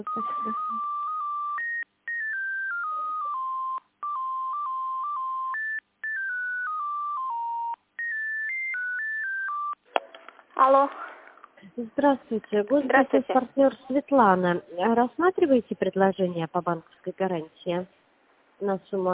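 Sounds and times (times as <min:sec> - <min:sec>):
speech: 0:00.0 - 0:00.6, 0:10.7 - 0:11.1, 0:11.7 - 0:18.0, 0:18.6 - 0:19.1
electronic telephone tones during call transfer: 0:00.0 - 0:10.4.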